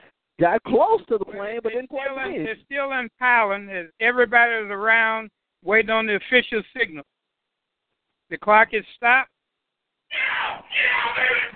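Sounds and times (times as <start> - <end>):
speech: 0.4 - 7.1, 8.3 - 9.3, 10.1 - 11.5
coaches shouting: 1.3 - 2.8, 10.1 - 11.5.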